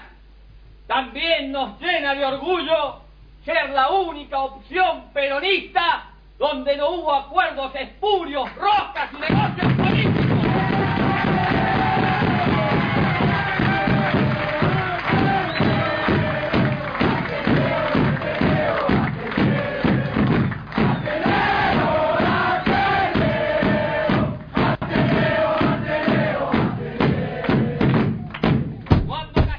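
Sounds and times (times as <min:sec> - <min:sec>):
speech: 0:01.1 - 0:10.1
Peronist bass drum pounding at political rally: 0:09.3 - 0:29.5
loud crowd chanting at political rally: 0:10.3 - 0:28.3.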